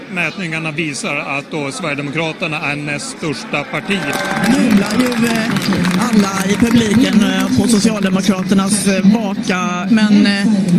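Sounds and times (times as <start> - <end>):
speech: 0.1 - 10.7
election night crowd cheering: 3.5 - 9.0
scattered clapping: 3.8 - 9.1.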